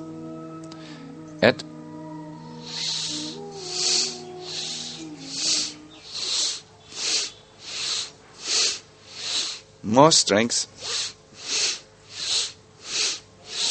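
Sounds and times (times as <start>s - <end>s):
faint soft music: 0.0s - 5.9s
speech: 1.4s - 1.7s, 9.9s - 11.0s
forceful nasal exhales of Bhastrika pranayama bellows breathing: 2.6s - 9.8s, 10.8s - 13.6s.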